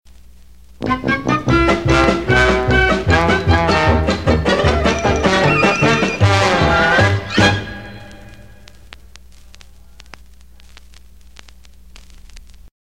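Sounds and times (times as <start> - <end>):
cartoon music bridge: 0.8 - 8.5.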